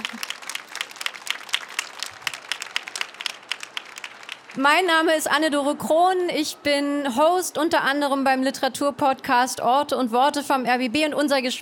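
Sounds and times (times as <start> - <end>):
audience clapping: 0.0 - 5.1
speech: 4.6 - 11.6.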